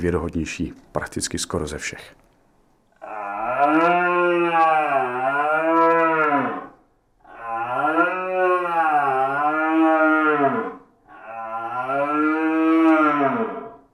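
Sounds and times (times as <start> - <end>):
speech: 0.0 - 2.2
deer call instrument imitating young red deer stag roars: 3.0 - 13.9.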